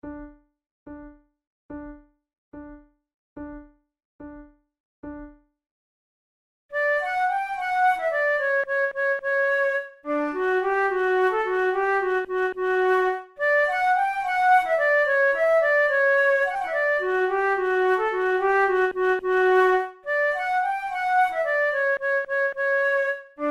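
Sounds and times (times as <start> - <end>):
flute duet: 6.7 - 23.4.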